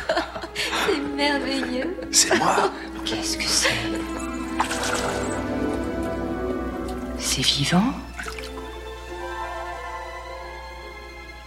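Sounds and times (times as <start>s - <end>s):
laughter: 0.0s - 4.3s
speech: 1.2s - 4.3s, 7.4s - 8.1s
sea water dripping: 2.8s - 9.0s.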